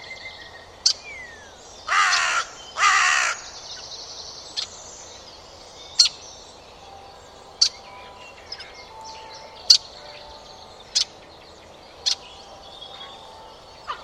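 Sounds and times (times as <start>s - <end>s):
harsh buzzy bird caws: 1.9s - 3.5s.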